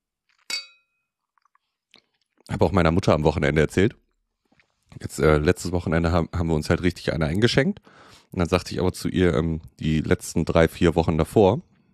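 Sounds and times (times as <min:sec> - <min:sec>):
glasses clinking in a toast: 0:00.5 - 0:01.0
speech: 0:02.4 - 0:04.0, 0:05.0 - 0:11.7.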